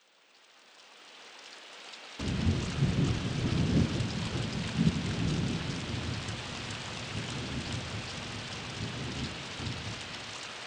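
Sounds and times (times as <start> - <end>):
thunder: 2.2 - 10.5.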